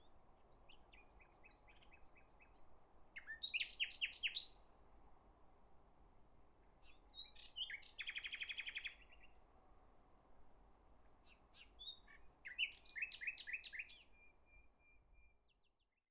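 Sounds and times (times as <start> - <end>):
nightingale singing in spring: 0.0 - 4.6, 6.8 - 9.4, 11.2 - 16.0.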